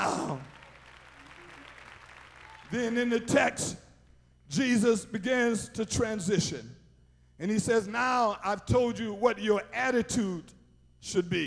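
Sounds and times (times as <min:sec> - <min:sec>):
audience clapping: 0:00.0 - 0:03.5
speech: 0:02.7 - 0:03.8, 0:04.5 - 0:06.8, 0:07.4 - 0:11.4.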